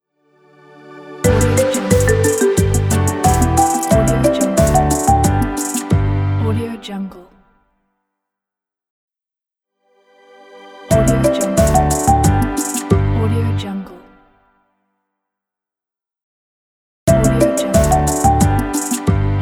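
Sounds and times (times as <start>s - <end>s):
happy intro logo jingle: 1.2s - 6.2s, 10.9s - 13.1s, 17.1s - 19.3s.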